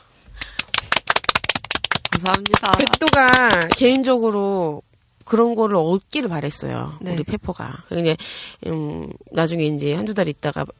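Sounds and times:
hand clapping: 0:00.4 - 0:04.1
speech: 0:02.2 - 0:10.7.

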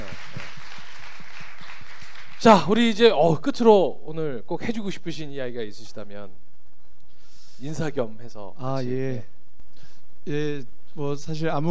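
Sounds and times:
sharp individual claps: 0:00.0 - 0:02.5
crowd applauding: 0:00.0 - 0:03.0
speech: 0:02.4 - 0:06.4, 0:07.6 - 0:09.4, 0:10.2 - 0:11.6.

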